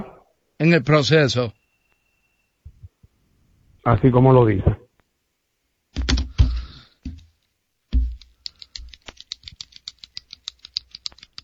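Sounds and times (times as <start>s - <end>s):
speech: 0.6s - 1.6s, 3.8s - 4.8s
pen clicking or tapping: 8.0s - 11.4s.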